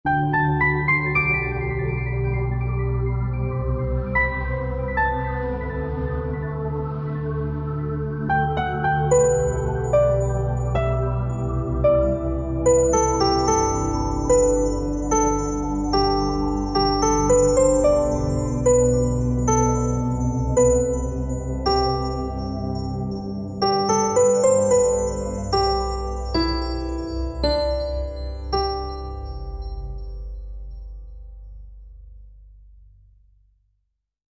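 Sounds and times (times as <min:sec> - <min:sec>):
lullaby music: 0:00.0 - 0:31.2.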